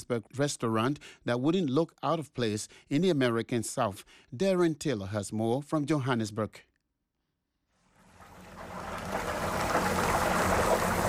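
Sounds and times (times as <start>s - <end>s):
speech: 0.0s - 6.7s
batter-coated chicken sizzling in frying oil: 7.9s - 11.0s.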